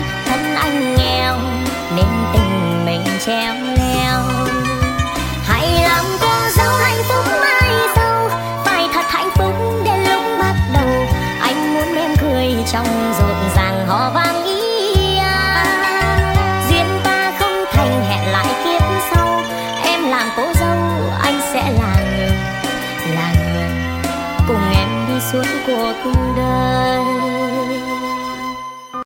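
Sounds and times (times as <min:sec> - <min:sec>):
sped-up lofi music: 0:00.2 - 0:27.7.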